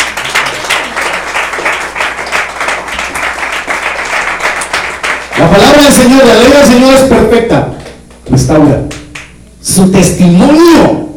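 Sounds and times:
crowd clapping hands: 0.0s - 6.4s, 7.7s - 9.4s
speech: 5.4s - 8.9s, 9.7s - 11.0s.

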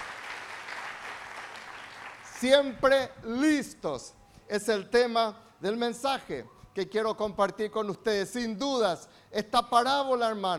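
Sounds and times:
crowd applauding loudly: 0.0s - 2.7s
speech: 2.4s - 10.5s.

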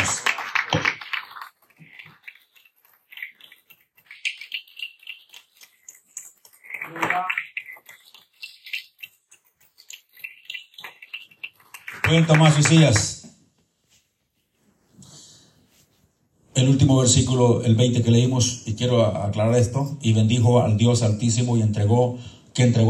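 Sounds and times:
audience applauding: 0.0s - 1.8s, 11.6s - 13.2s
speech: 12.1s - 13.2s, 16.7s - 22.8s.

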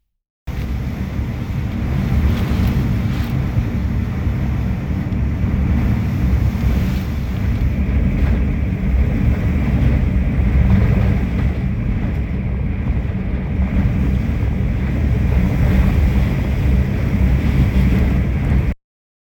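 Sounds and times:
typhoon rain: 0.5s - 9.0s
typhoon wind: 0.5s - 18.8s.

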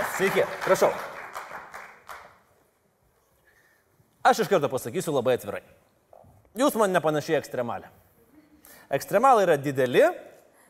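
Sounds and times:
studio audience clapping welcoming a talk show guest: 0.0s - 2.5s
speech: 0.2s - 1.1s, 4.3s - 5.9s, 6.6s - 8.0s, 8.9s - 10.3s.

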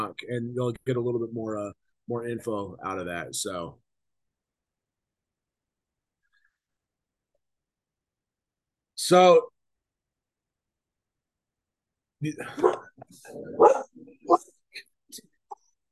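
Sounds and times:
speech: 0.1s - 3.8s, 9.0s - 9.5s, 12.2s - 15.3s
dog barking: 12.6s - 12.9s, 13.5s - 14.4s.

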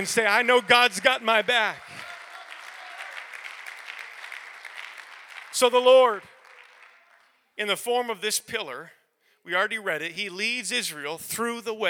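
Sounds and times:
speech: 0.0s - 1.9s, 5.6s - 6.3s, 7.6s - 11.8s
audience clapping: 0.0s - 7.6s.

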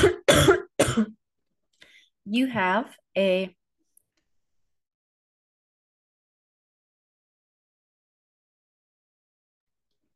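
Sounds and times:
harsh wet coughing from one person: 0.0s - 1.2s
speech: 2.3s - 3.6s.

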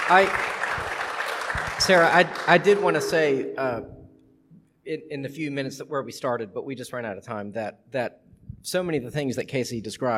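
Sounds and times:
audience clapping: 0.0s - 3.4s
speech: 0.1s - 0.9s, 1.5s - 4.0s, 4.8s - 10.1s.

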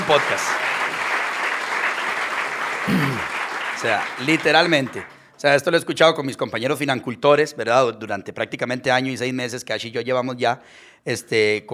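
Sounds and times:
audience applause: 0.0s - 5.2s
speech: 0.1s - 0.8s, 2.8s - 11.7s.

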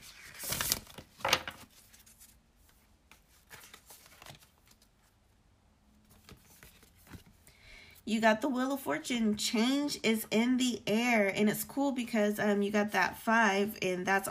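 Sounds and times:
card shuffling from a cannabis oracle deck: 0.0s - 5.1s, 6.0s - 7.5s
speech: 8.1s - 14.2s.

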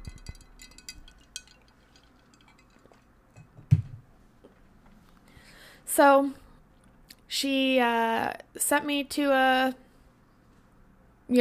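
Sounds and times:
ice clinking in iced coffee: 0.0s - 3.5s
speech: 6.0s - 6.4s, 7.4s - 9.8s.

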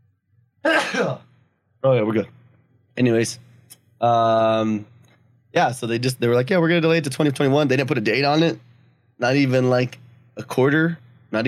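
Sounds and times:
speech: 0.6s - 2.4s, 3.0s - 4.9s, 5.5s - 11.4s
person sneezing: 0.7s - 1.2s.

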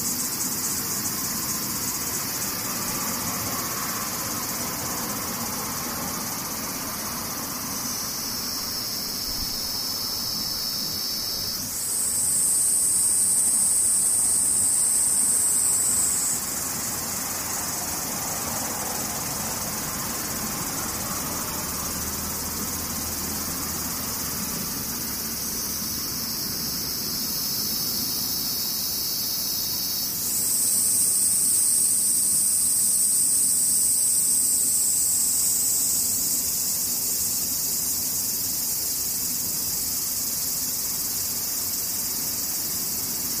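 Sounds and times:
cicadas buzzing: 0.0s - 43.3s.

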